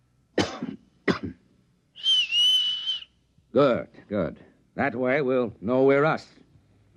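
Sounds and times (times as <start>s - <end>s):
person coughing: 0.4s - 1.4s
person whistling: 2.0s - 3.1s
speech: 3.6s - 6.4s.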